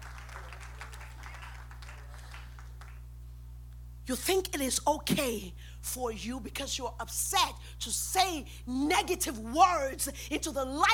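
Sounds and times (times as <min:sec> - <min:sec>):
audience applauding: 0:00.0 - 0:03.1
speech: 0:04.1 - 0:10.9.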